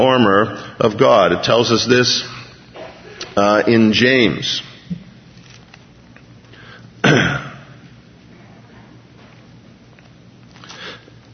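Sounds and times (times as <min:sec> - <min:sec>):
speech: 0:00.0 - 0:02.4, 0:03.4 - 0:05.0
throat clearing: 0:07.0 - 0:07.8.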